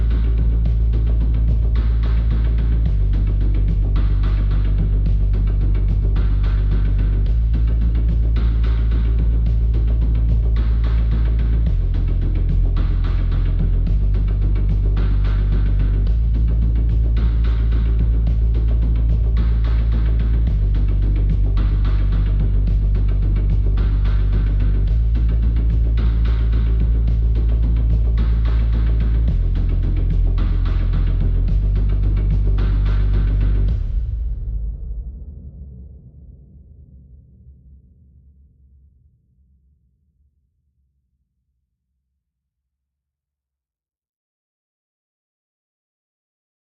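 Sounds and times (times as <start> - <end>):
bass: 0.0 - 36.5
drums: 0.0 - 37.7.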